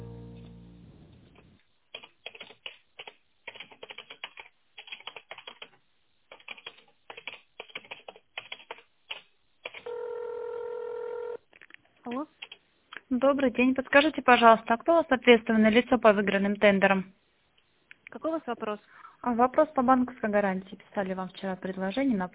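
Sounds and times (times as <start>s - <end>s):
faint tone hum: 0.0s - 1.9s, 9.4s - 22.3s
steady telephone tone: 9.8s - 11.4s
speech: 12.1s - 12.4s, 13.1s - 17.2s, 18.2s - 22.3s.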